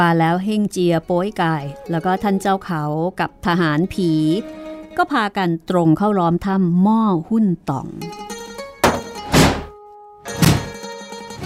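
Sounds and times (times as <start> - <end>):
speech: 0.0 - 8.2
heavy booming thuds of pounding on a cave door: 8.8 - 9.7, 10.3 - 10.8.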